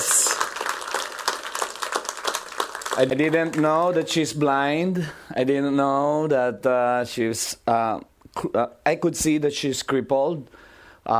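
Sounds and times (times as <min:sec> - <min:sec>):
audience clapping hands: 0:00.0 - 0:04.6
speech: 0:03.0 - 0:11.1.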